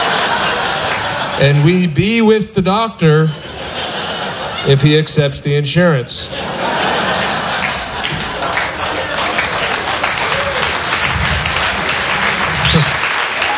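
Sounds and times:
crowd applauding: 0.0s - 1.9s, 6.4s - 13.5s
laughter: 0.0s - 2.0s, 3.0s - 5.4s, 6.1s - 13.5s
speech: 1.4s - 3.4s, 4.6s - 6.8s
whoops: 10.2s - 11.0s, 12.2s - 13.5s.

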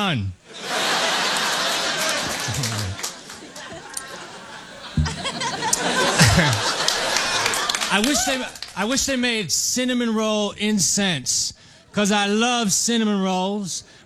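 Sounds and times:
speech: 0.0s - 0.7s, 2.5s - 3.0s, 7.9s - 14.0s
scattered laughter: 0.5s - 8.6s
audience applause: 0.6s - 8.8s
voices cheering: 0.6s - 9.0s.

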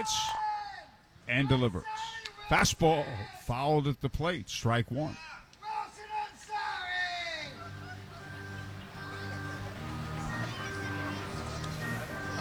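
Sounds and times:
speech: 0.0s - 0.4s, 1.3s - 5.4s
rowdy fan shouting loudly near crowd microphone: 5.7s - 12.4s
crowd murmur: 7.5s - 12.4s
droning hum: 7.5s - 12.4s.

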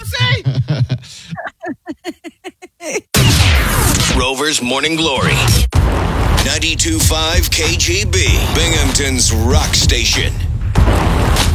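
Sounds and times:
laughter: 0.0s - 3.1s
gunshot fired at an orange inside a house: 3.2s - 4.2s, 5.5s - 9.1s, 10.8s - 11.5s
speech: 4.3s - 10.5s.

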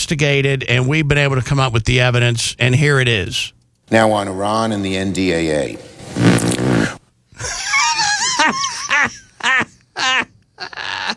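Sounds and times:
speech: 0.0s - 7.6s
fart: 6.0s - 7.0s
laughter: 7.4s - 11.1s.

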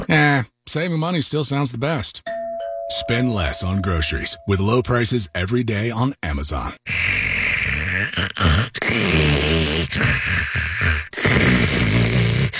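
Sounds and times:
speech: 0.1s - 2.3s, 2.9s - 7.2s, 8.0s - 11.8s
loud rattling snoring: 7.0s - 12.5s.

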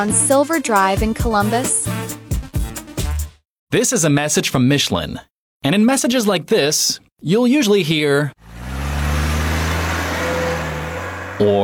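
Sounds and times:
speech: 0.0s - 2.0s, 3.7s - 8.4s, 11.4s - 11.6s
car engine in a Michelin tire advertisement: 8.4s - 11.6s.

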